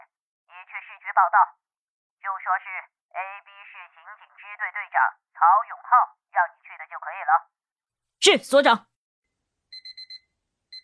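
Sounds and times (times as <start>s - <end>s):
speech: 0.6s - 7.5s, 8.2s - 8.9s
bedside electronic alarm clock ringing: 9.7s - 10.8s.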